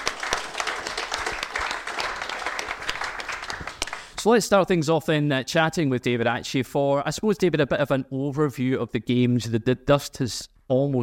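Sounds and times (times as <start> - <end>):
audience applause: 0.0 - 4.2
speech: 4.2 - 11.0.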